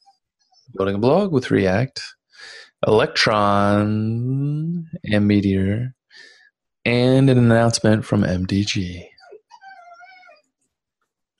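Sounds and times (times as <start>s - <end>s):
speech: 0.7s - 9.1s
dog whining: 9.1s - 10.6s
dog yelp: 9.2s - 10.4s.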